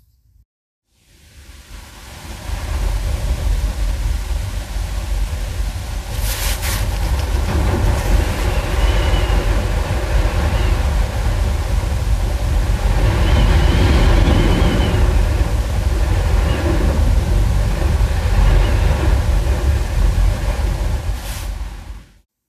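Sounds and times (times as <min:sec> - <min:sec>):
strong wind recorded from indoors: 0:01.0 - 0:22.2.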